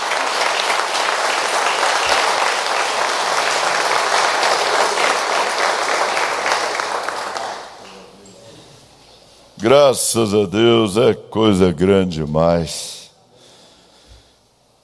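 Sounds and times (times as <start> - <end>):
audience clapping: 0.0 - 8.2
speech: 9.6 - 12.9.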